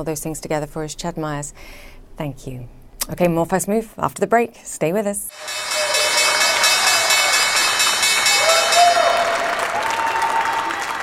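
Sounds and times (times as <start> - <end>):
speech: 0.0 - 5.7
crowd applause and cheering at stock exchange opening: 5.3 - 11.0
faint whistling tones: 5.4 - 11.0.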